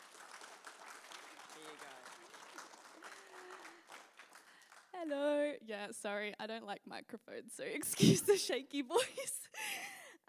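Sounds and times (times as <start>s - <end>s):
round of applause: 0.0s - 5.0s
speech: 5.0s - 9.4s.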